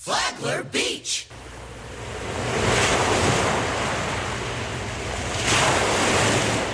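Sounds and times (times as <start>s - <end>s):
speech: 0.0s - 1.4s
ocean waves breaking at a beach pier: 1.3s - 6.7s.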